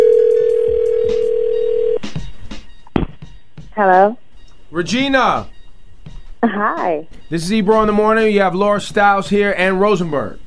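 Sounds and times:
telephone dial tone: 0.0 - 2.0
speech: 3.8 - 4.2, 4.8 - 5.5, 6.4 - 10.4.

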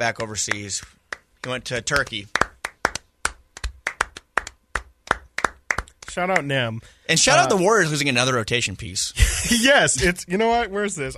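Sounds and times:
speech: 0.0 - 2.4, 6.2 - 11.1
hand claps: 0.0 - 6.5.

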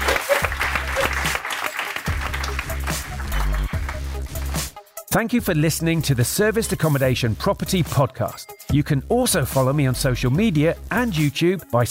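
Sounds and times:
crowd applauding: 0.0 - 4.6
speech: 5.2 - 11.8.

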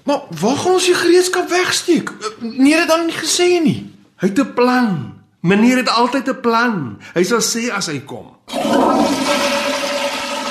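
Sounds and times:
speech: 0.0 - 9.6
toilet flushing: 8.5 - 10.5.

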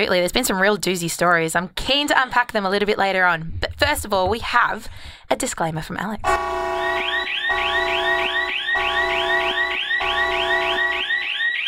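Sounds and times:
speech: 0.0 - 8.9
warning siren sound effect: 6.2 - 11.6.

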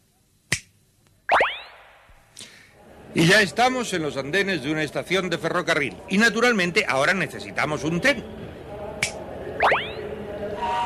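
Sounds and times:
finger snap: 0.5 - 0.7, 9.0 - 9.2
speech: 3.1 - 8.4.

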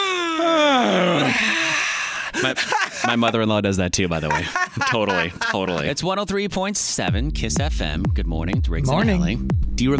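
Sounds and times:
person groaning through a yawn: 0.0 - 2.0
laughter: 2.3 - 6.1
speech: 2.4 - 9.9.

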